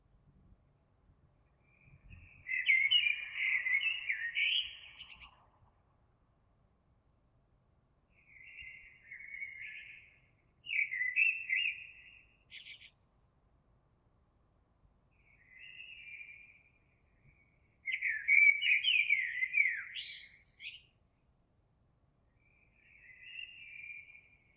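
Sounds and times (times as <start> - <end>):
Eurasian blackbird song: 1.3 - 6.1, 8.0 - 13.0, 15.0 - 21.2, 22.2 - 24.5.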